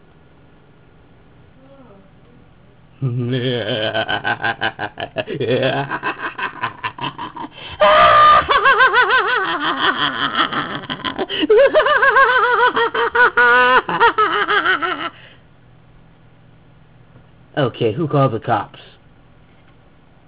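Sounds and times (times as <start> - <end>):
person laughing: 3.0 - 15.2.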